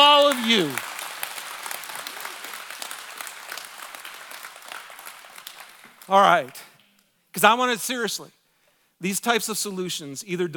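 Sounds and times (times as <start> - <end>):
audience applause: 0.0 - 6.6
speech: 0.5 - 0.9, 6.1 - 6.7, 7.4 - 8.4, 9.0 - 10.5.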